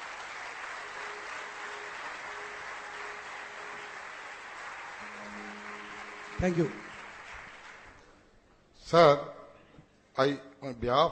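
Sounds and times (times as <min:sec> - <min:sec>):
large crowd giving a standing ovation applause: 0:00.0 - 0:08.3
speech: 0:06.4 - 0:06.9, 0:08.9 - 0:09.3, 0:10.2 - 0:11.1.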